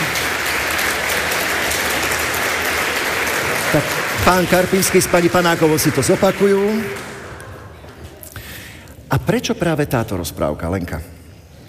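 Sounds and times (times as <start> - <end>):
audience applause: 0.0 - 7.8
speech: 3.7 - 7.0, 9.3 - 11.2.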